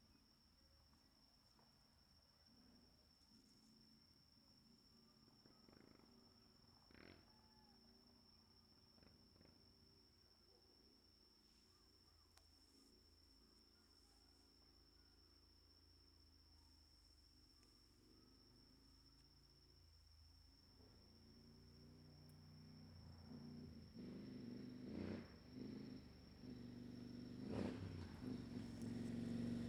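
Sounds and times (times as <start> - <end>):
motocross motorcycles passing fast on an asphalt street: 23.3 - 29.6.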